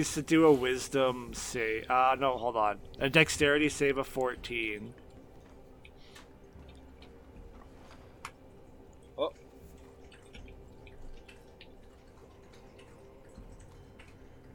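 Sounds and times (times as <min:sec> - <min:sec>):
speech: 0:00.0 - 0:05.0, 0:09.2 - 0:09.4
low hum: 0:00.0 - 0:14.5
water drip: 0:01.2 - 0:14.5.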